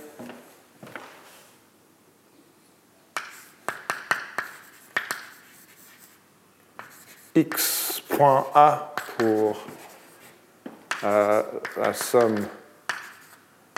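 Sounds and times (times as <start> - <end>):
handwriting of mathematical notation taps and scratches: 3.2 - 6.2, 6.8 - 7.9, 9.0 - 10.2, 10.9 - 13.7
speech: 7.4 - 9.8, 11.0 - 12.6.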